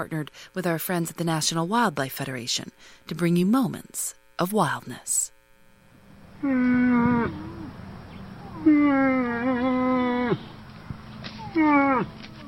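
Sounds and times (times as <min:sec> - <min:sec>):
speech: 0:00.0 - 0:05.4, 0:06.4 - 0:07.6, 0:08.6 - 0:10.5, 0:11.6 - 0:12.2
female moose calling in drawn-out moans: 0:06.4 - 0:10.6, 0:11.3 - 0:12.4.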